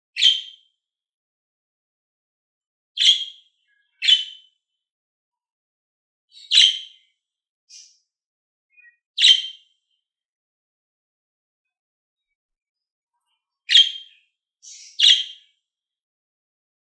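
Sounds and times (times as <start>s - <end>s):
lovebird screechy chirps: 3.0s - 4.5s, 6.3s - 7.0s, 8.7s - 9.6s, 13.7s - 15.4s.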